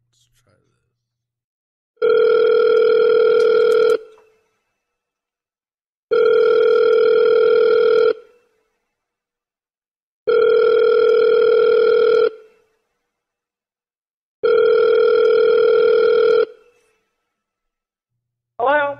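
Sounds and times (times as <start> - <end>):
phone line ringing out with long buzzing tones: 2.0 - 4.2, 6.1 - 8.3, 10.3 - 12.5, 14.4 - 16.6.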